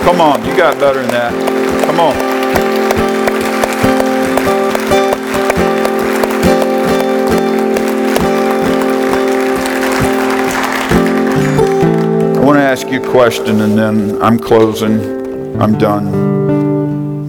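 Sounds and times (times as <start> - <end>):
audience hand clapping applause: 0.0 - 13.7
speech: 0.1 - 2.9, 12.8 - 16.3.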